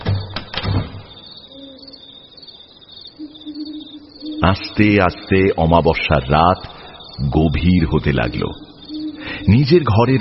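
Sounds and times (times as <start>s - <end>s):
heavy doors being shut: 0.0s - 1.2s
faint sustained tonal sounds: 1.1s - 10.1s
speech: 4.4s - 8.7s, 9.5s - 10.1s.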